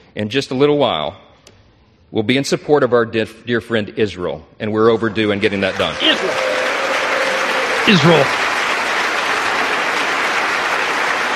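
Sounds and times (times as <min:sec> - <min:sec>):
speech: 0:00.2 - 0:01.3, 0:02.1 - 0:06.4, 0:07.9 - 0:08.4
standing applause in legislative chamber: 0:05.4 - 0:11.3.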